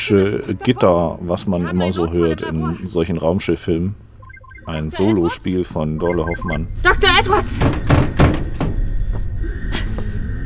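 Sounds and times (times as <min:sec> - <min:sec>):
speech: 0:00.0 - 0:04.1, 0:04.7 - 0:08.1
laughter: 0:00.0 - 0:10.4
low rumbling background: 0:02.8 - 0:10.4
heavy thuds banging on a closed door: 0:04.4 - 0:10.0.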